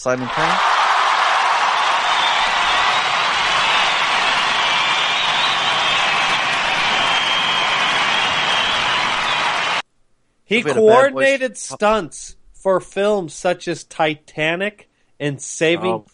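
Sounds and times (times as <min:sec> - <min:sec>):
speech: 0:00.0 - 0:00.8, 0:10.5 - 0:16.1
audience applause for a guest stunt coordinator: 0:00.0 - 0:09.8.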